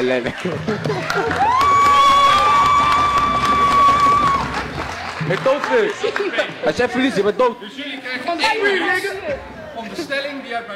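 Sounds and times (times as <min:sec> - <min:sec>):
speech: 0:00.0 - 0:01.8, 0:05.3 - 0:10.7
loud audience applause and cheering: 0:00.6 - 0:06.8.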